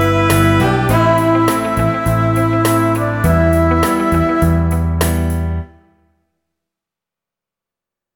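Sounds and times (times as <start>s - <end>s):
pop ballad on transverse flute in E minor: 0.0s - 5.7s.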